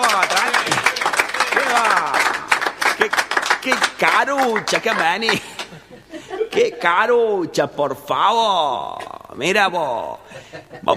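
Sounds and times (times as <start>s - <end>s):
laughter: 0.0s - 2.4s, 4.6s - 7.2s, 9.9s - 10.9s
crowd clapping and cheering: 0.0s - 5.8s
speech: 4.2s - 10.2s.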